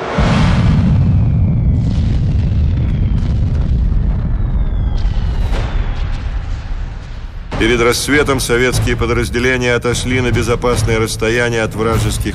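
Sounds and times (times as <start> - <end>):
underground mine explosion of TNT: 0.0 - 10.8
speech: 7.6 - 12.3.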